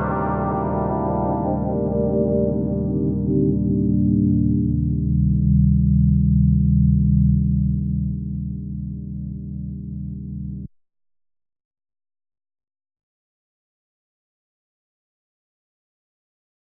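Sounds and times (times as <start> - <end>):
Roland Fantom Jupiter-8 model synthesizer: 0.0 - 10.7.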